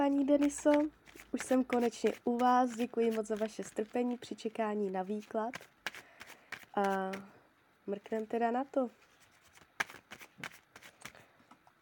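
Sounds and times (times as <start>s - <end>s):
speech: 0.0s - 5.7s, 6.8s - 9.0s
tarot cards shuffling: 0.2s - 4.3s, 5.0s - 7.3s, 9.0s - 11.2s.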